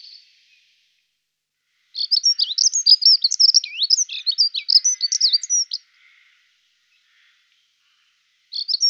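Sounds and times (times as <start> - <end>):
dunnock warbling: 2.0 - 8.8.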